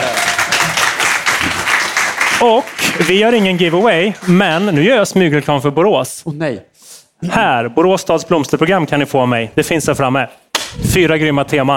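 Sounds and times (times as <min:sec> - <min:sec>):
audience applause: 0:00.0 - 0:04.8
speech: 0:02.4 - 0:11.7.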